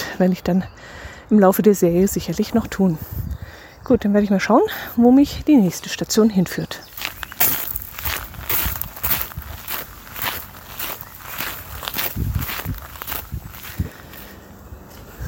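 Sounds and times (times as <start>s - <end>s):
speech: 0.2s - 6.9s
footsteps walking outdoors: 5.5s - 15.2s.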